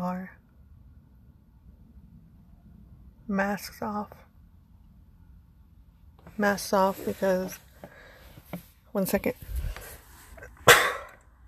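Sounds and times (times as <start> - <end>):
speech: 0.0 - 0.4, 3.3 - 4.2, 6.4 - 7.6, 8.5 - 9.5
sneeze: 10.6 - 11.2.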